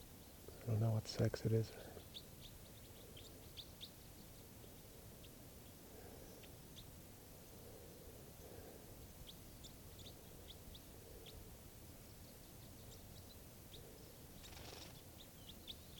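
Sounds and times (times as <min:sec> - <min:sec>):
bird chirping: 0:00.0 - 0:15.9
hiss: 0:00.0 - 0:15.9
speech: 0:00.7 - 0:02.2.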